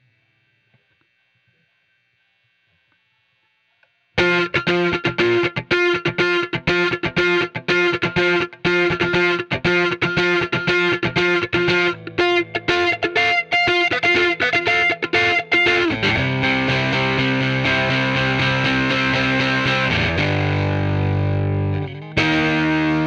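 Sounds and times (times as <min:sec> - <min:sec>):
guitar: 0:04.2 - 0:23.0.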